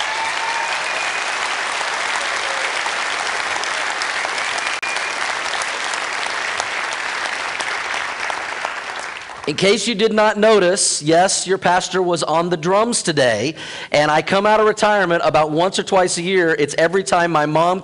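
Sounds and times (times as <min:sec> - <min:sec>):
church congregation applauding to welcome the pastor's mother on Mother's Day: 0:00.0 - 0:09.8
speech: 0:09.5 - 0:17.8.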